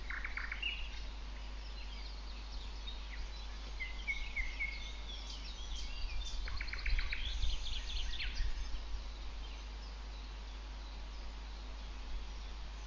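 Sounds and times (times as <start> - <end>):
low background hum: 0.0 - 12.8
nightingale singing: 0.0 - 12.8
other birds chirping: 0.0 - 12.8.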